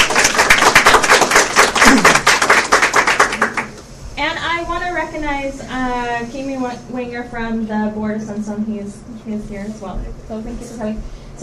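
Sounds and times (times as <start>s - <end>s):
audience applause: 0.0s - 3.8s
speech: 5.2s - 11.2s.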